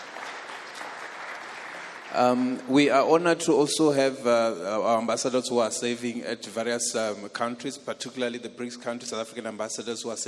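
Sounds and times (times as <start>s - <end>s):
round of applause: 0.0s - 2.8s
speech: 2.1s - 10.2s.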